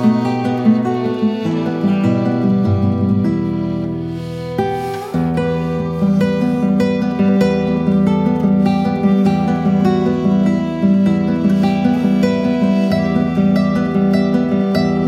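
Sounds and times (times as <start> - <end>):
traditional piece on classical guitar: 0.0 - 15.0.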